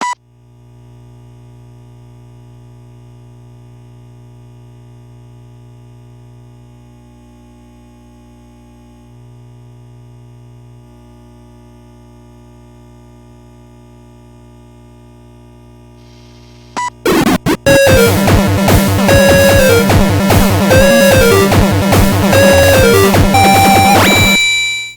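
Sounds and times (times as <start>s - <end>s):
game start jingle with intro: 17.0s - 24.9s.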